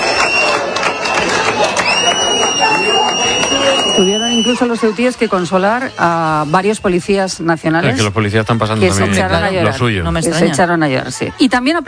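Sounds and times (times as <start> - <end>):
overlapping voices: 0.0 - 6.2
crowd applauding: 0.0 - 6.8
speech: 4.0 - 11.8.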